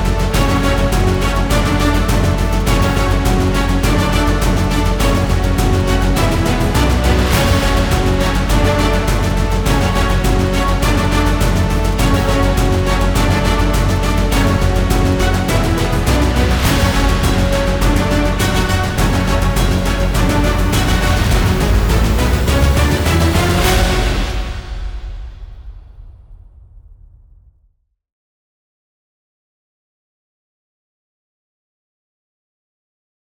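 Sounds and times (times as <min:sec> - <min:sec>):
combat sounds: 0:00.0 - 0:24.7.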